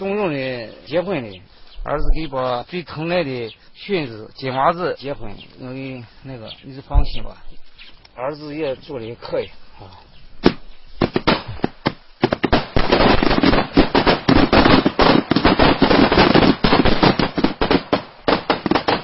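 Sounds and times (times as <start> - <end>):
speech: 0.0 - 7.6, 8.2 - 10.1
long string of ceremonial firecrackers exploding: 10.4 - 19.0.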